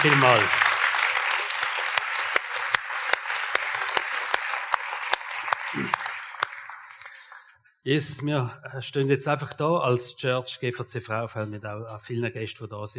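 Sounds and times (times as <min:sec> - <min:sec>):
speech: 0:00.0 - 0:00.7, 0:05.8 - 0:06.0, 0:07.8 - 0:12.9
audience applause: 0:00.0 - 0:07.5.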